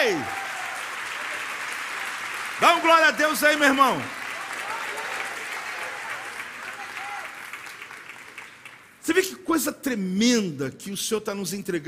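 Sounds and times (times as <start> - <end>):
loud applause: 0.0 - 9.0
speech: 0.1 - 0.4, 2.6 - 4.2, 9.0 - 11.8.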